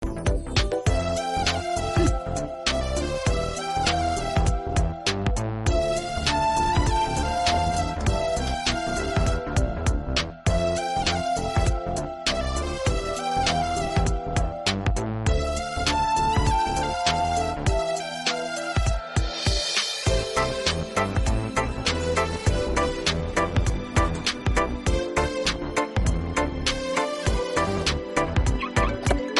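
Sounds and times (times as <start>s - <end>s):
romantic background music: 0.2s - 29.3s.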